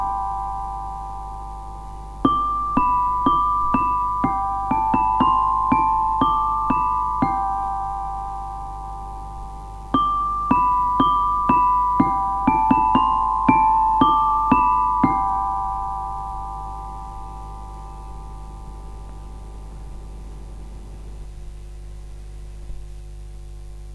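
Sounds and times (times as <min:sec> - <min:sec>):
xylophone: 0:02.2 - 0:08.7, 0:10.0 - 0:18.4.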